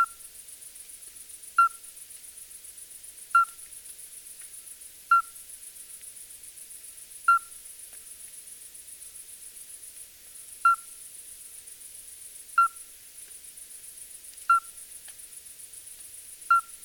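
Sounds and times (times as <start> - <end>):
midwife toad calling: 0.0 - 0.2, 1.6 - 1.9, 3.4 - 3.7, 5.1 - 5.4, 7.3 - 7.6, 10.6 - 11.0, 12.6 - 12.9, 14.5 - 14.8, 16.5 - 16.8.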